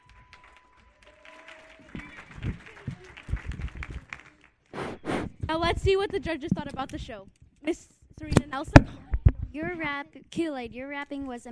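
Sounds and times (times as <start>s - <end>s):
audience applause: 0.0s - 5.1s
speech: 5.6s - 11.4s.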